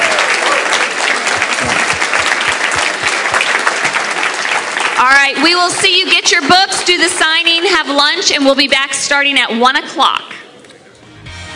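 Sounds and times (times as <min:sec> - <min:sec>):
audience applause: 0:00.0 - 0:07.5
speech: 0:05.2 - 0:10.3.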